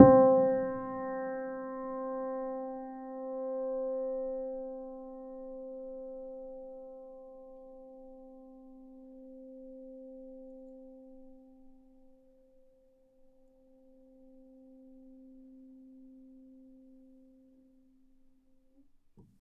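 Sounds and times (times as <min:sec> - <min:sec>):
felt piano note C3: 0:00.0 - 0:06.6.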